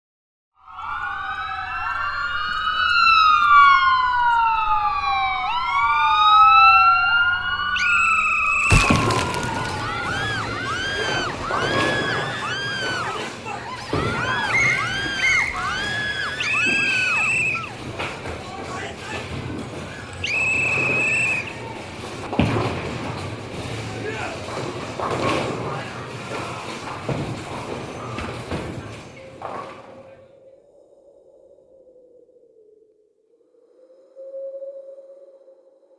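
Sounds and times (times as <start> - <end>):
wind: 0.6 - 35.9
police raid: 3.2 - 22.4.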